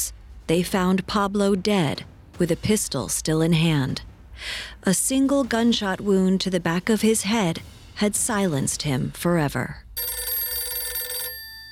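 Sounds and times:
speech: 0.0 - 10.2
old-style telephone bell ringing: 10.0 - 11.7.

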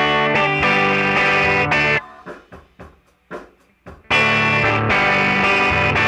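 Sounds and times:
guitar amp overdrive just breaking up: 0.0 - 2.0, 4.0 - 6.0.

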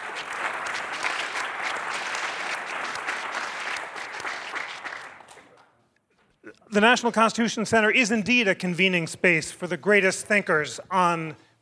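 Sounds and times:
crowd clapping: 0.0 - 5.7
speech: 6.7 - 11.4.

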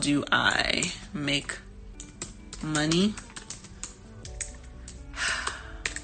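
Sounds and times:
speech: 0.0 - 1.7, 2.6 - 3.3
one-handed typing on a computer keyboard during a web search: 1.9 - 6.0.

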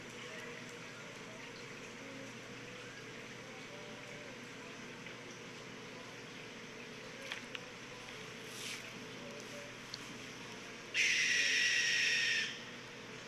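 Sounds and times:
owl letting out a blood-curdling scream: 11.0 - 12.6.

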